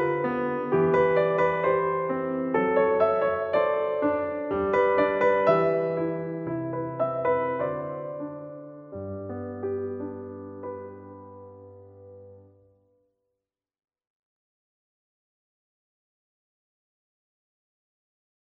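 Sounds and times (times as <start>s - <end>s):
piano: 0.0s - 13.1s.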